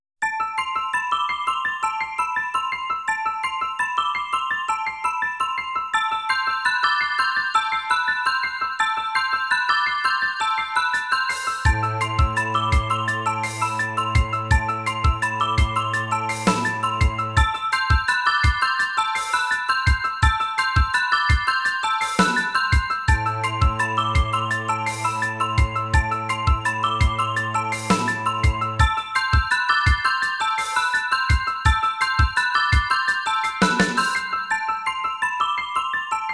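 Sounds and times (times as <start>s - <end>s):
synthesizer: 0.2s - 36.3s.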